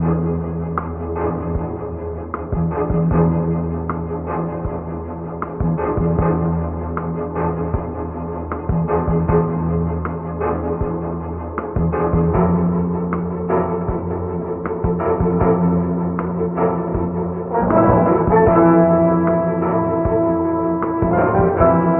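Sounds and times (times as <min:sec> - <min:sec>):
sad string music loop: 0:00.0 - 0:21.9.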